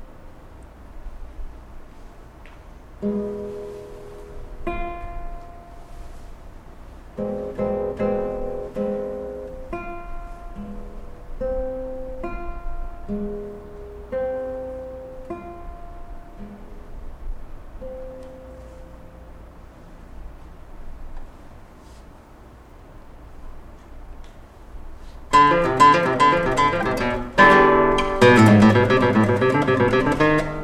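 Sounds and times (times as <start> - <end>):
classical guitar: 3.0 - 6.3, 7.1 - 19.6, 25.3 - 30.6.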